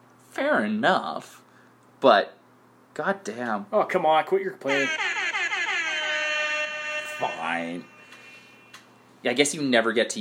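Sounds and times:
speech: 0.4 - 1.4, 2.0 - 2.4, 3.0 - 5.1, 7.2 - 7.9, 9.2 - 10.2
horn sound effect: 4.7 - 8.7.

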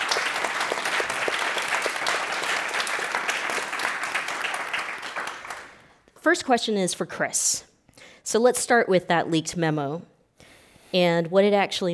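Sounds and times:
audience clapping: 0.0 - 6.0
speech: 6.3 - 10.1, 10.9 - 11.9.

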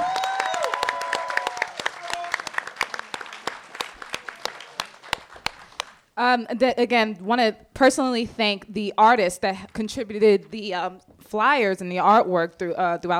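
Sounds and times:
audience round of applause: 0.0 - 6.0
speech: 6.2 - 13.1.

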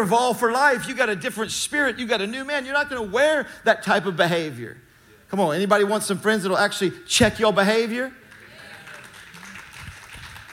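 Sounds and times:
speech: 0.0 - 8.2
audience clapping: 8.2 - 10.5.

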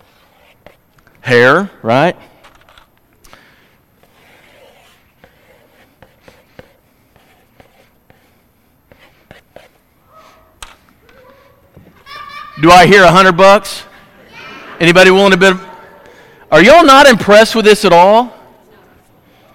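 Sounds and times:
pen strokes scratching across paper while a picture is drawn: 0.0 - 0.8, 4.0 - 11.5
speech: 1.2 - 2.3, 12.6 - 13.9, 14.8 - 15.7, 16.5 - 18.4.

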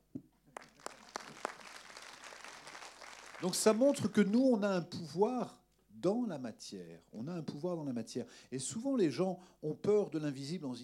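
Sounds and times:
audience applauding: 0.6 - 4.2
speech: 3.4 - 10.8.

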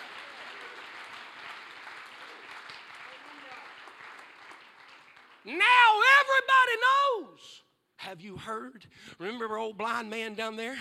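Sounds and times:
audience clapping hands: 0.0 - 6.4
speech: 5.4 - 5.8, 6.4 - 10.7.

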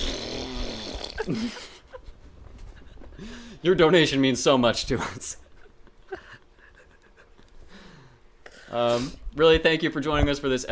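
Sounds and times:
fart: 0.0 - 1.4
speech: 1.3 - 1.7, 3.2 - 5.4, 8.7 - 10.7.

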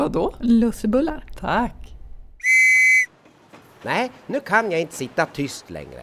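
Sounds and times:
speech: 0.0 - 2.6, 3.8 - 6.0
train whistle: 2.4 - 3.1.

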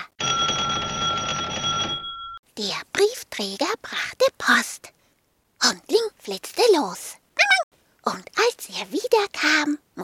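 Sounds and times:
doorbell ringing: 0.2 - 2.4
speech: 2.6 - 5.0, 5.6 - 7.2, 8.0 - 10.0.

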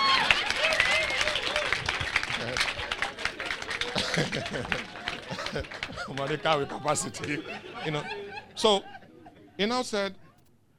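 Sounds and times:
audience clapping: 0.0 - 7.9
laughter: 0.0 - 10.4
speech: 4.2 - 9.0, 9.6 - 10.2.

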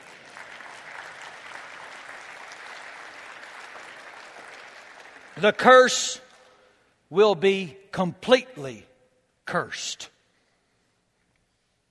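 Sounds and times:
audience applause: 0.0 - 5.9
speech: 5.4 - 6.2, 7.1 - 8.9, 9.5 - 10.1.

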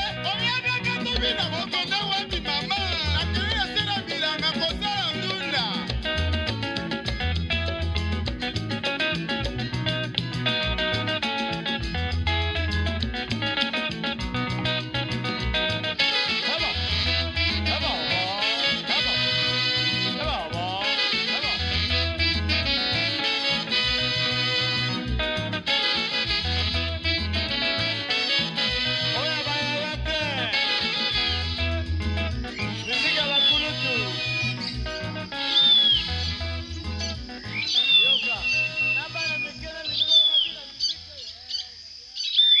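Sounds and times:
Congolese rumba with bass beat and guitar: 0.0 - 41.4
tropical birdsong: 32.6 - 42.5.

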